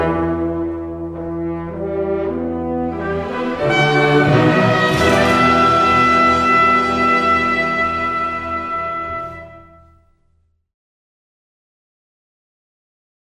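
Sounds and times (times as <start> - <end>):
orchestra: 0.0 - 10.2.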